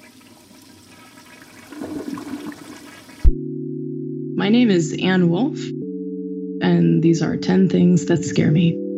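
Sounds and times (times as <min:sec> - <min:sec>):
toilet flushing: 0:00.0 - 0:03.3
speech: 0:04.4 - 0:05.8, 0:06.7 - 0:08.8.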